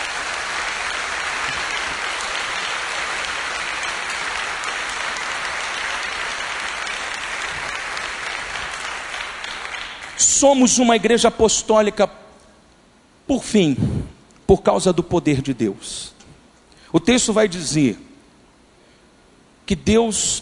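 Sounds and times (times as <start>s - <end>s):
audience applauding: 0.0s - 10.5s
speech: 10.4s - 12.2s, 13.3s - 16.2s, 16.9s - 18.1s, 19.7s - 20.4s.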